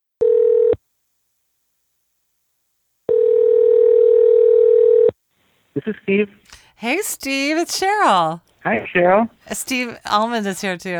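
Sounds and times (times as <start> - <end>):
telephone dial tone: 0.2 - 0.8, 3.1 - 5.2
speech: 5.8 - 10.9.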